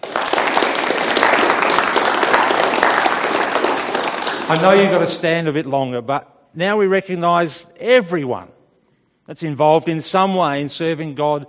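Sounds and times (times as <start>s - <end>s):
audience applauding: 0.0s - 5.3s
speech: 4.5s - 8.6s, 9.3s - 11.4s.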